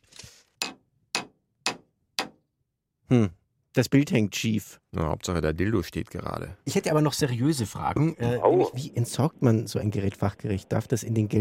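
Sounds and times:
hammering a nail: 0.6s - 2.4s
speech: 3.1s - 11.3s.

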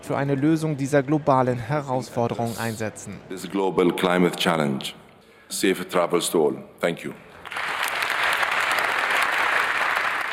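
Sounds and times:
speech: 0.1s - 7.3s
thunderous applause: 7.5s - 10.3s.

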